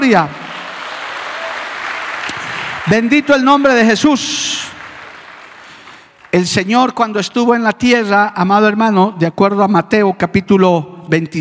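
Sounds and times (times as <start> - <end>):
audience applause: 0.0 - 6.5
speech: 0.1 - 0.4, 2.9 - 4.7, 6.3 - 11.3.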